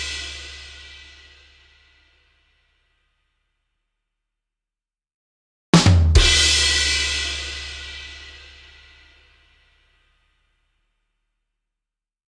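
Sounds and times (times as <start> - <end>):
drum rimshot sting: 5.8 - 7.4.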